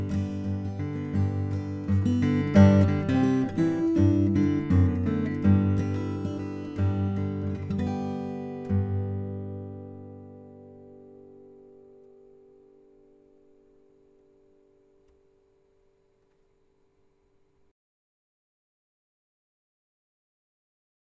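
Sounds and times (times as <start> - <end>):
new folk tune: 0.0 - 11.0.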